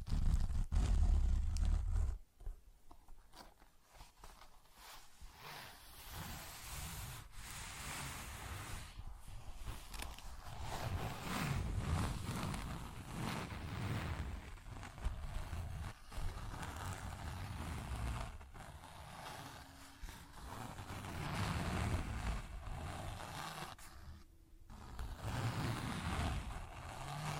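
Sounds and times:
close continuous scratching and rubbing: 0.0s - 2.2s, 3.1s - 27.3s.

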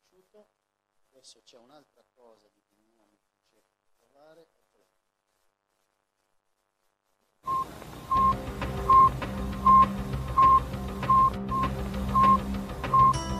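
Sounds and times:
Sputnik 1 satellite radio beeping: 7.5s - 13.2s.

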